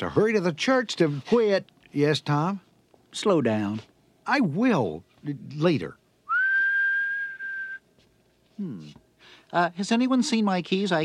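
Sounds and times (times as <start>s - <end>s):
speech: 0.0s - 6.0s, 8.6s - 11.0s
long steady whistled note: 6.3s - 7.8s.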